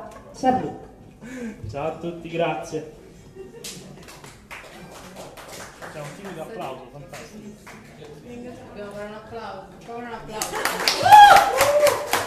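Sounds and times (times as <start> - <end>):
speech: 0.4 - 3.8, 6.0 - 12.2
audience applause: 4.0 - 6.4, 10.4 - 12.2.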